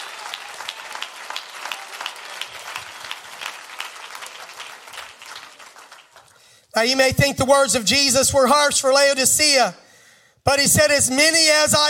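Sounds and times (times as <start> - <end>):
audience clapping hands: 0.0 - 6.7
speech: 6.8 - 9.8, 10.5 - 11.8.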